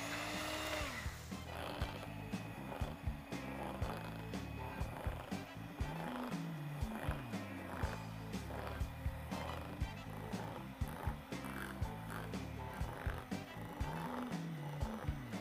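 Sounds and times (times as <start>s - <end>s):
electric mixer whirring through batter: 0.0s - 15.3s.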